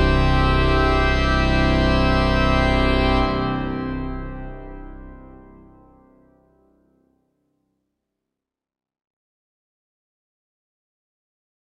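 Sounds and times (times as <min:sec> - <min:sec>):
Christmas organ fanfare: 0:00.0 - 0:06.3.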